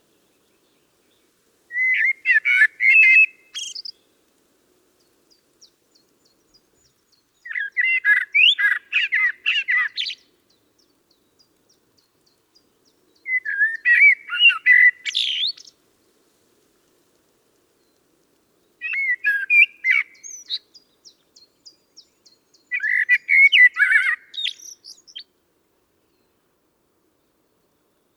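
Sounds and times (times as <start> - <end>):
common blackbird singing: 0.6 - 4.0, 5.6 - 15.7, 18.8 - 25.3.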